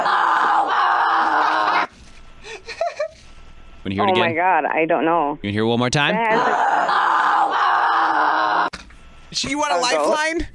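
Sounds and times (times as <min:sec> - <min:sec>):
woman in labor screaming: 0:00.0 - 0:01.9, 0:06.3 - 0:08.7
laughter: 0:00.0 - 0:03.3, 0:06.3 - 0:08.7
speech: 0:03.8 - 0:07.0, 0:09.4 - 0:10.5.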